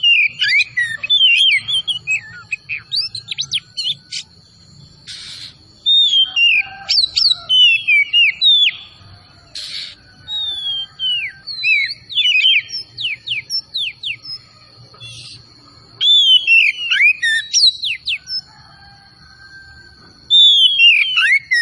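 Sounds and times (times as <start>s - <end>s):
Oriental magpie-robin singing sweeping whistled notes: 0.0s - 18.6s, 19.4s - 21.6s
harsh hissing noise: 5.0s - 5.8s, 9.5s - 10.1s.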